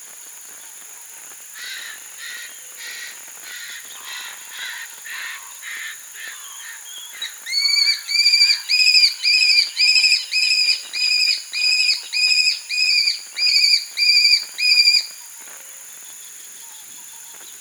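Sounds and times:
aplomado falcon calling: 0:07.5 - 0:15.1.

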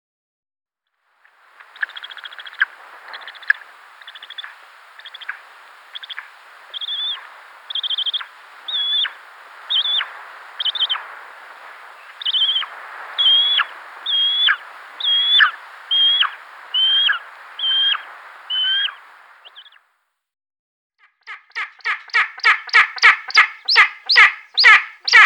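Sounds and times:
Spanish imperial eagle harsh barking calls: 0:04.3 - 0:19.0, 0:21.6 - 0:25.2.

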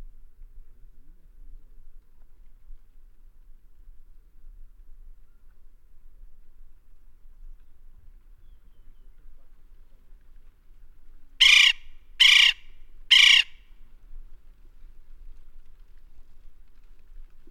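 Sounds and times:
West Indian woodpecker: 0:11.4 - 0:13.6.

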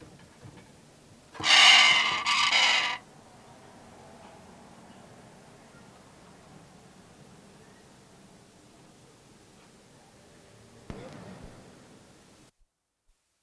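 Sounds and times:
Pesquet's parrot screeching: 0:01.4 - 0:03.0.

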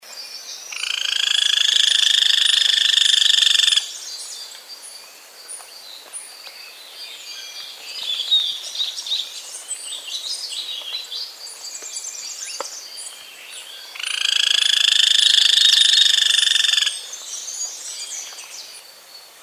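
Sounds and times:
golden-olive woodpecker rapid rattle call: 0:00.7 - 0:03.9, 0:14.0 - 0:17.0.

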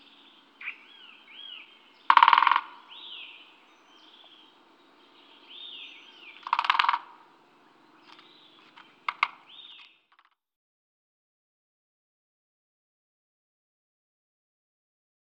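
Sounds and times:
great spotted woodpecker calling: 0:00.0 - 0:10.1.

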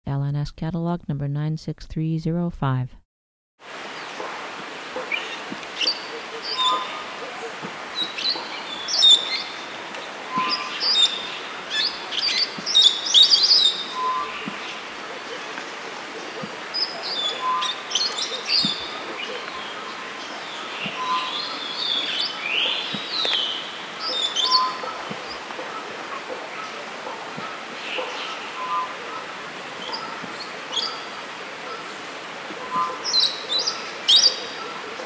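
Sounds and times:
speech: 0:00.3 - 0:03.0
steady quiet hiss: 0:03.6 - 0:35.0
yellow-faced or yellow-headed parrot calling: 0:05.0 - 0:31.8.

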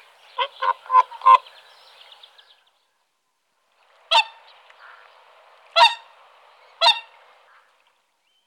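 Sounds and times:
whooper swans bugling and trumpeting: 0:00.0 - 0:01.6, 0:05.8 - 0:06.1, 0:06.8 - 0:07.2.

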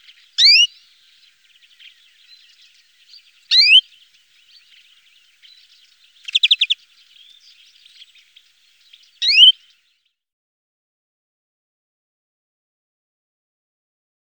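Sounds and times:
greenfinch song: 0:00.0 - 0:10.2.

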